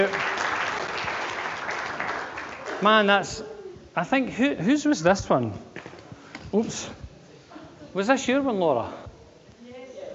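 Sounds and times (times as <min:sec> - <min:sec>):
audience applause: 0:00.0 - 0:03.1
speech: 0:02.8 - 0:05.7, 0:06.5 - 0:07.0, 0:07.9 - 0:09.0.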